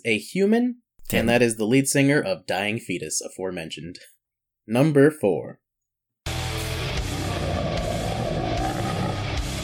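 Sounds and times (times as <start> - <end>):
speech: 0.0 - 5.6
man burping: 7.0 - 9.5.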